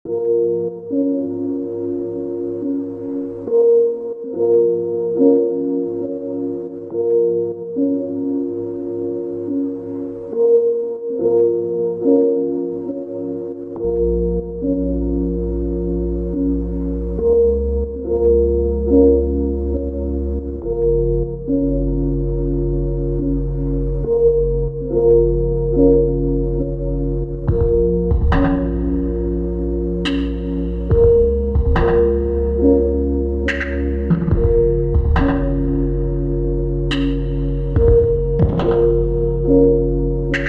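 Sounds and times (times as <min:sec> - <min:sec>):
theme beat: 0:00.1 - 0:40.4.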